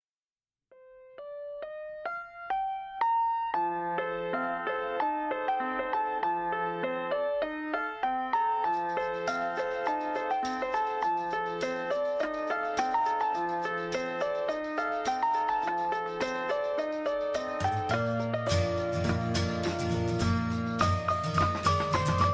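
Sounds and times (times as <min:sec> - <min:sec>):
instrumental music: 0:00.7 - 0:22.3.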